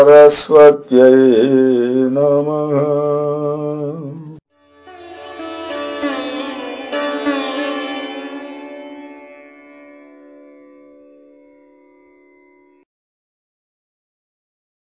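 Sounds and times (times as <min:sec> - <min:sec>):
mantra chanting: 0:00.0 - 0:04.4.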